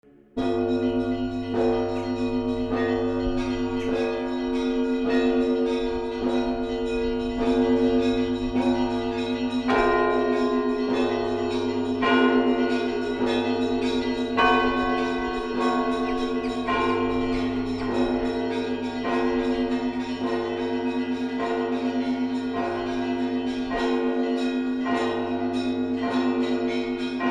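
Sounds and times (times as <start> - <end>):
church bells ringing: 0.4 - 27.2.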